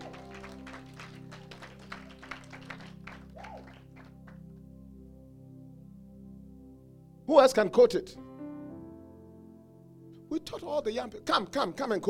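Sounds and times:
group clapping: 0.0s - 4.4s
speech: 7.3s - 8.3s, 10.4s - 12.0s.

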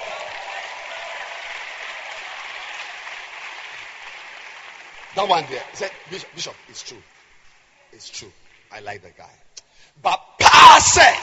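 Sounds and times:
audience applause: 0.0s - 7.2s
speech: 5.2s - 7.1s, 7.9s - 10.2s, 10.8s - 11.2s.

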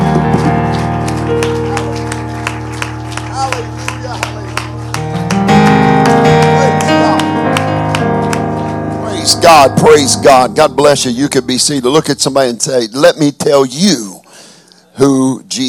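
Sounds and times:
audience clapping hands in praise: 0.0s - 12.5s
speech: 9.4s - 14.2s, 15.0s - 15.6s.

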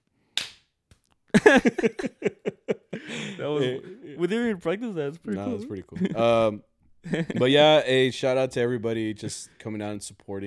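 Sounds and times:
single hand clap: 0.4s - 1.0s
speech: 1.3s - 2.6s, 3.4s - 10.4s
laughter: 1.3s - 7.8s.

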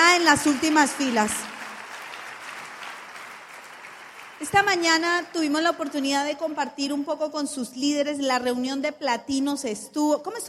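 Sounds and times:
audience applause: 0.0s - 6.5s
speech: 0.2s - 1.5s, 4.4s - 10.4s.

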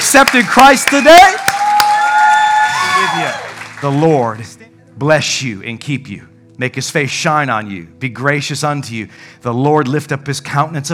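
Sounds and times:
audience clapping: 0.0s - 4.6s
speech: 0.1s - 1.6s, 3.0s - 10.9s
audience shouting and whooping: 0.9s - 3.9s.

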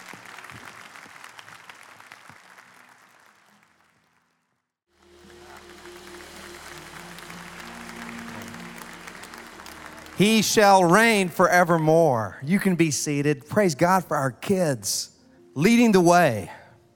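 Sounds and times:
audience clapping: 0.0s - 12.2s
speech: 10.2s - 16.6s.

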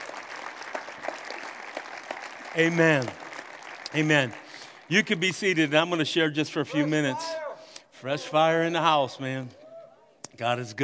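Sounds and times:
church congregation applauding to welcome youth ministry members: 0.0s - 6.3s
speech: 2.6s - 3.2s, 3.9s - 7.4s, 8.0s - 9.6s, 10.4s - 10.8s.

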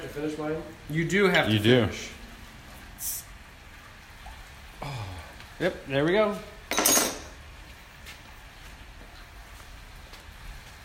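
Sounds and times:
speech: 0.1s - 2.2s, 5.6s - 6.5s
glasses clinking while being cleaned: 6.7s - 7.4s.

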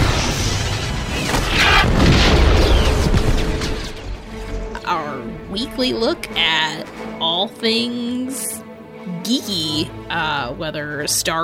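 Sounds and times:
Star Wars stormtroopers blaster fire: 0.0s - 4.4s
rumbling booms: 0.0s - 4.7s
speech: 5.6s - 8.6s, 9.2s - 11.4s.

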